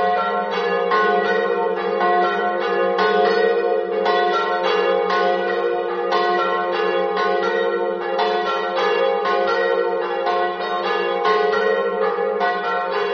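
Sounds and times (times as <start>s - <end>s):
bells ringing: 0.0s - 13.1s.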